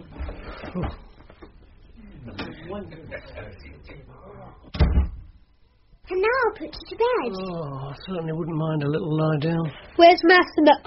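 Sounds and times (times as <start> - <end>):
speech: 0.7 - 1.1, 2.3 - 5.1, 6.1 - 10.8
door opening and closing: 4.7 - 5.3.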